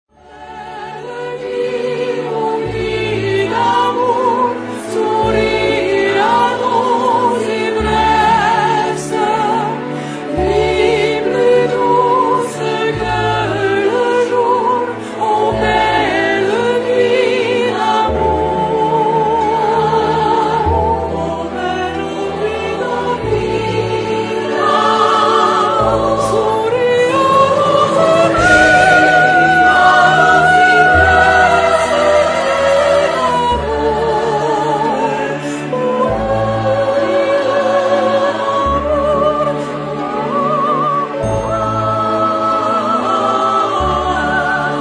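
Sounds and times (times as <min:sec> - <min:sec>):
SATB choir singing a barcarolle: 0:00.2 - 0:44.7.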